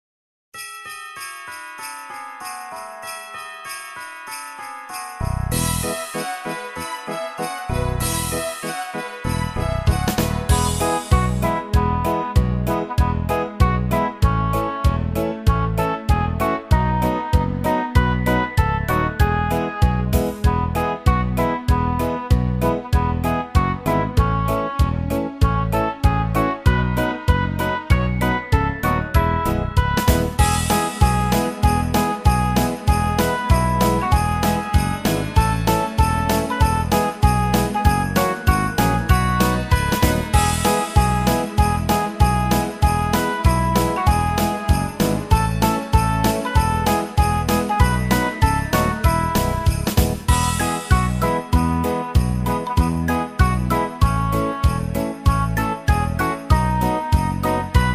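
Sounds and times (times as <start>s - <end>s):
instrumental Christmas song: 0.5s - 57.9s.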